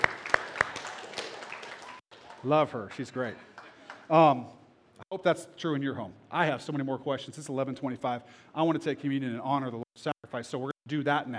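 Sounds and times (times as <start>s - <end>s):
people clapping: 0.0s - 4.4s
speech: 2.4s - 3.5s, 4.1s - 11.3s.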